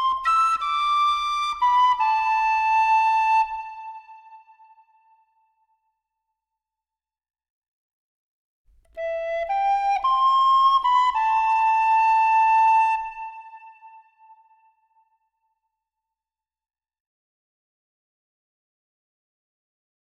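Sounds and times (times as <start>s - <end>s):
tin whistle melody: 0.0s - 4.0s, 9.0s - 14.5s.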